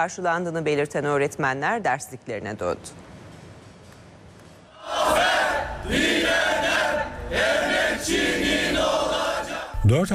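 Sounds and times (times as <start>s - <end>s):
speech: 0.0s - 3.1s, 9.8s - 10.1s
crowd cheering and chanting outside a private Italian high school in Istanbul: 4.7s - 9.8s.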